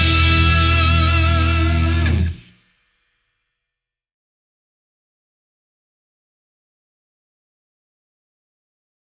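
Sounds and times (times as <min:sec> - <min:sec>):
instrumental music: 0:00.0 - 0:02.5.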